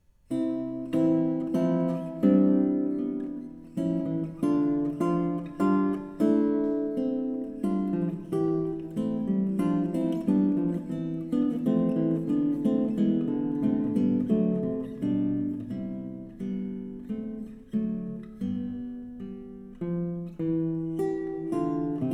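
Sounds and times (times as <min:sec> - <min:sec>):
Spanish guitar andantino study: 0:00.0 - 0:22.1.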